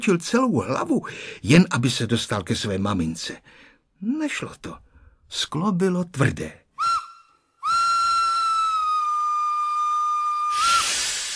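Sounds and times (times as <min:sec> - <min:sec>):
speech: 0:00.0 - 0:06.6
train whistle before departure: 0:06.8 - 0:11.3
loud rush of hissing steam: 0:10.4 - 0:11.3.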